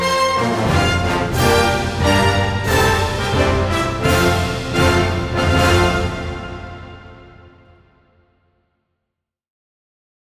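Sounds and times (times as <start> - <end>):
national anthem music: 0.0 - 8.2.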